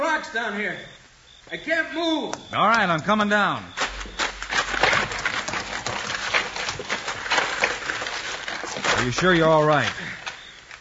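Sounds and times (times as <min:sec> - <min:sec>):
rough noise: 0:00.0 - 0:10.8
speech: 0:00.2 - 0:04.2, 0:09.0 - 0:10.0
horse hooves clip-clopping: 0:02.2 - 0:10.8.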